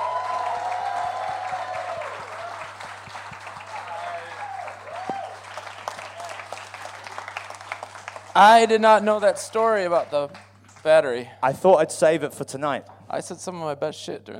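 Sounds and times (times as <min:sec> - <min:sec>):
audience applause and cheering welcoming a guest onto a stage: 0:00.0 - 0:08.8
speech: 0:08.4 - 0:14.3.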